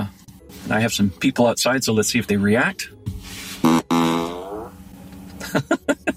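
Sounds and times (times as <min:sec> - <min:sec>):
speech: 0:00.7 - 0:03.0
fart noise from a car's external speaker: 0:03.6 - 0:04.8.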